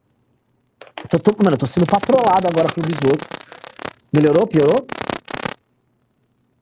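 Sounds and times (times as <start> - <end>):
old mobile phone interference: 0.5 - 5.7
speech: 1.1 - 5.0.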